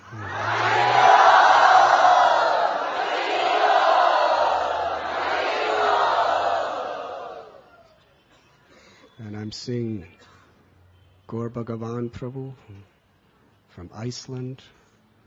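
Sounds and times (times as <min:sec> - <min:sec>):
crowd loudly chanting in thanks to their hosts: 0:00.0 - 0:07.7
speech: 0:09.6 - 0:10.4, 0:11.3 - 0:13.0, 0:13.8 - 0:14.8.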